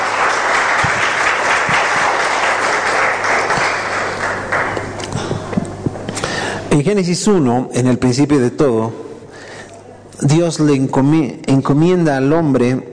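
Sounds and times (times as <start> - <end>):
audience applause: 0.0 - 5.3
speech: 6.8 - 9.1, 10.2 - 12.9.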